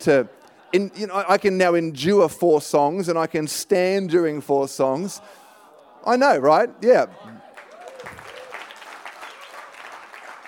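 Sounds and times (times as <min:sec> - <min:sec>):
speech: 0:00.0 - 0:05.4, 0:06.0 - 0:07.4
people clapping: 0:07.2 - 0:10.4.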